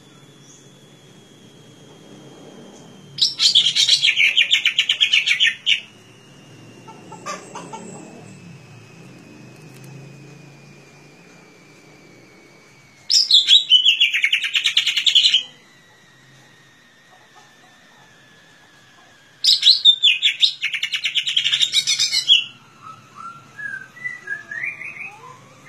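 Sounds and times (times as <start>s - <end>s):
leafbird singing chirping warbled notes: 0.0s - 1.7s, 2.7s - 8.9s, 13.1s - 15.5s, 19.4s - 25.6s.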